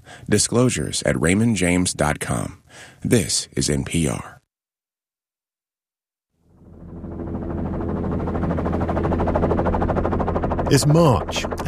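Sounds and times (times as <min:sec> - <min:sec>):
speech: 0:00.3 - 0:04.4, 0:10.7 - 0:11.6
helicopter engine roaring as it lifts off: 0:06.5 - 0:11.6.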